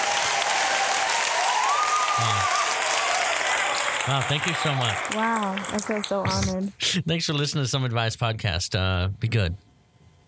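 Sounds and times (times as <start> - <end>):
crowd cheering and applauding sound effect: 0.0 - 6.5
speech: 4.0 - 9.7.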